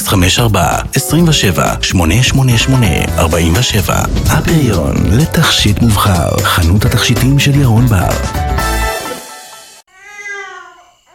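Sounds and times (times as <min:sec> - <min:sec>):
speech: 0:00.1 - 0:08.7
neighbours' baby crying: 0:09.9 - 0:11.1.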